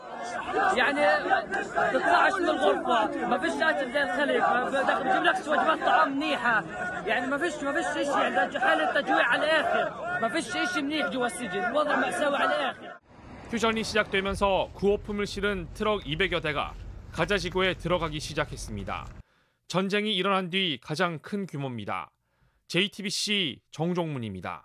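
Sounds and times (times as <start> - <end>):
excited shouts: 0.0 - 13.0
large outdoor crowd cheering and chattering welcoming returning prisoners: 0.0 - 14.6
speech: 0.4 - 24.6.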